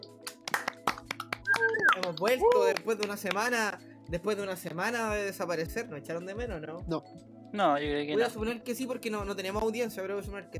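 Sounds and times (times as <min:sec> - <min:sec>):
scattered applause: 0:00.0 - 0:03.6
rising high-pitched whoop-like tone: 0:01.5 - 0:02.6
speech: 0:02.0 - 0:10.5.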